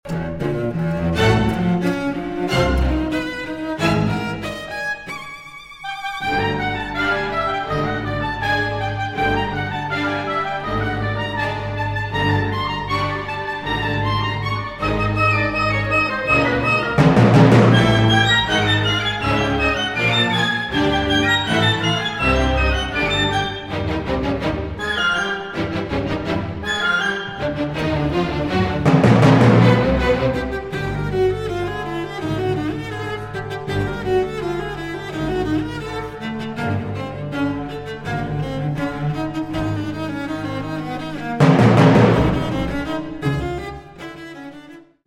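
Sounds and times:
live cello concerto in E flat major: 0.0 - 45.0.

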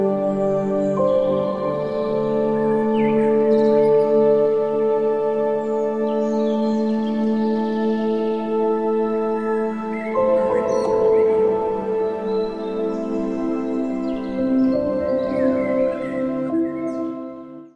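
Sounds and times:
calm piano: 0.0 - 17.7.

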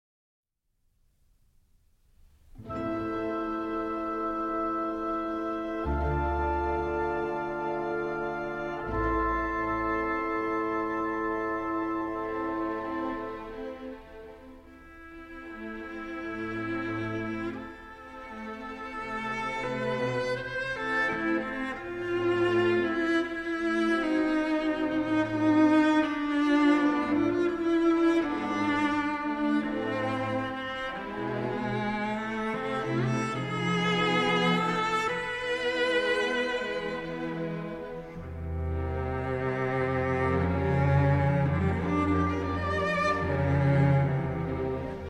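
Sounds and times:
cello concerto in A minor: 2.4 - 45.0.

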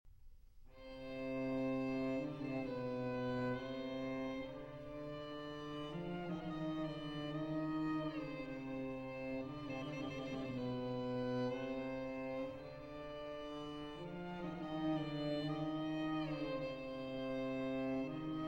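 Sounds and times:
string quartet: 0.8 - 18.4.

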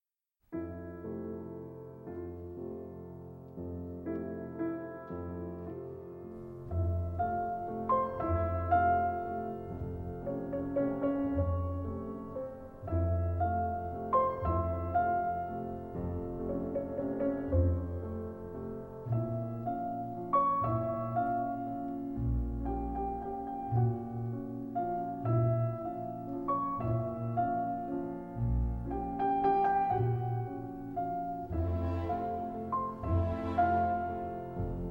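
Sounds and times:
waltz music: 0.6 - 34.9.

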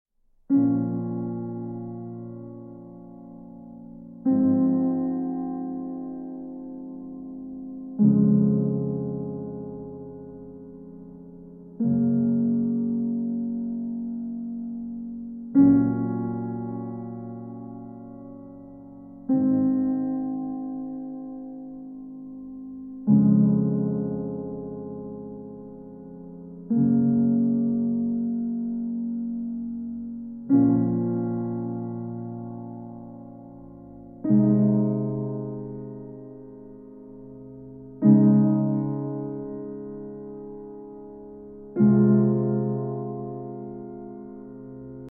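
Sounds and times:
piano music: 0.5 - 45.0.

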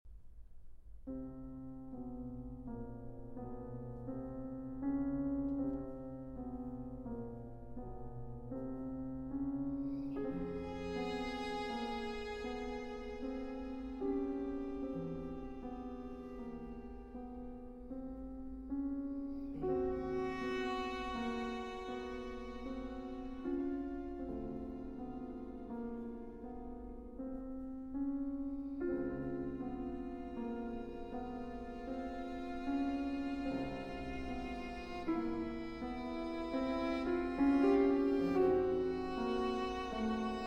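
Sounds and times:
concerto for piano, violin and string quartet: 1.0 - 40.4.

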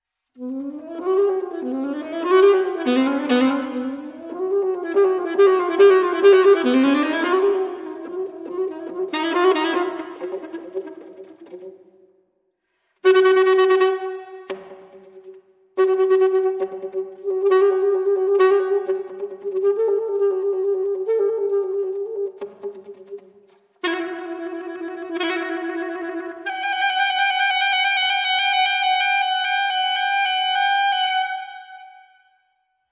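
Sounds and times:
alto saxophone piece: 0.3 - 11.8, 13.0 - 32.5.

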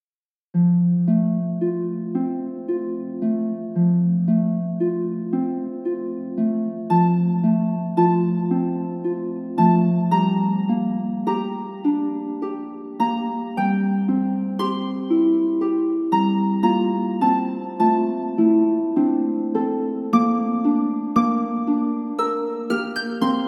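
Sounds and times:
harp: 0.6 - 23.4.

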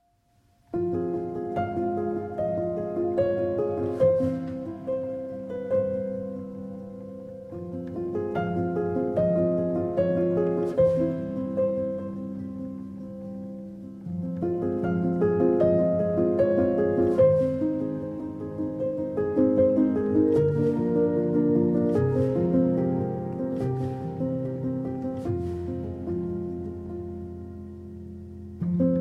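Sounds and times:
nocturne for piano: 0.0 - 29.0.

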